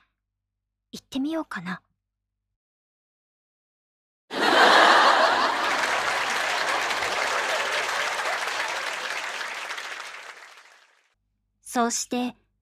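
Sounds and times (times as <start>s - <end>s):
speech: 0.9s - 1.9s, 11.7s - 12.4s
live comedy crowd applause and laughter: 4.3s - 11.0s.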